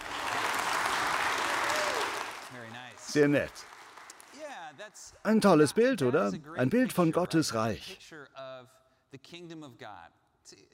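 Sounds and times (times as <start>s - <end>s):
crowd applause: 0.0s - 4.6s
speech: 3.1s - 3.7s, 5.0s - 10.7s.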